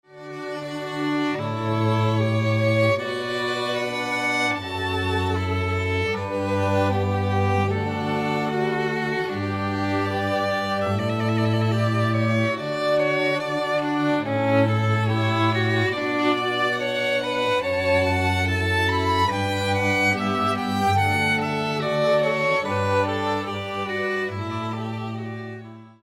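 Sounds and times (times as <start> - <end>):
strings playing for a wedding ceremony: 0.1 - 26.0.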